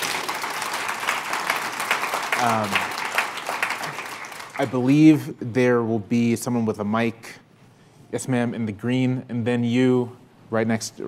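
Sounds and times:
audience applause: 0.0 - 4.9
speech: 2.4 - 2.9, 4.6 - 7.4, 8.1 - 11.0.

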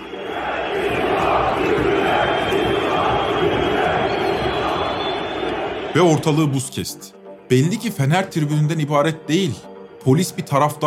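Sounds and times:
Beşiktaş stadium crowd chanting for government resignation: 0.0 - 6.2
speech: 6.0 - 10.8.

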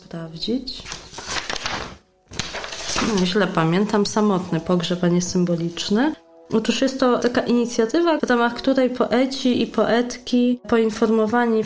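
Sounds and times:
speech: 0.1 - 1.0, 3.1 - 11.6
rustling a sheet of paper: 0.8 - 4.5.

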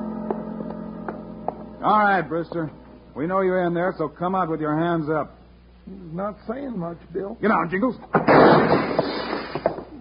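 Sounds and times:
speech: 1.8 - 9.1
gunshots: 8.2 - 9.7
window shattering: 8.2 - 9.8.

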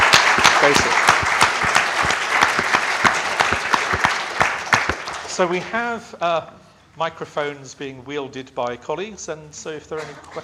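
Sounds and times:
audience applause: 0.0 - 5.6
speech: 0.6 - 1.0, 5.4 - 10.4.

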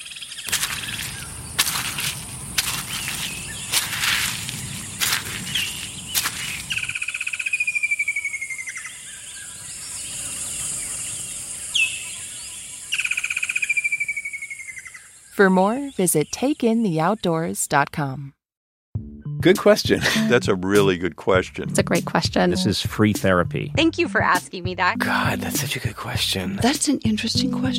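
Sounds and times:
birdsong with downward-sliding whistled calls along a forest walk: 0.0 - 16.4
sharp crackling sounds: 0.4 - 7.0
speech: 15.4 - 18.4, 19.4 - 27.7
laughter: 19.7 - 21.5.

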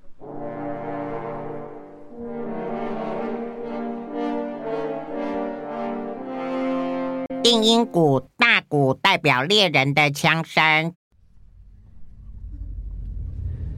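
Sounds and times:
three French horns playing: 0.0 - 7.7
speech: 7.4 - 11.0.

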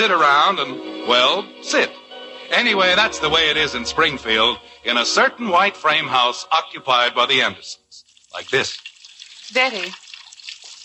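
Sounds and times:
speech: 0.0 - 8.9, 9.5 - 10.0
dishes washed under running water: 8.0 - 10.8.

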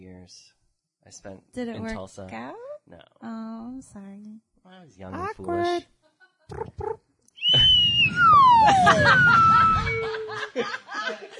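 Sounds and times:
speech: 0.2 - 11.3
slide whistle: 7.4 - 10.4
people laughing: 8.5 - 11.3.

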